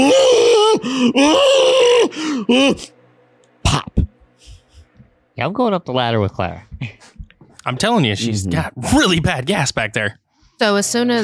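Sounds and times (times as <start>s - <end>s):
human voice imitating a cow screaming in terror: 0.0s - 2.9s
speech: 1.0s - 3.0s, 5.4s - 11.2s.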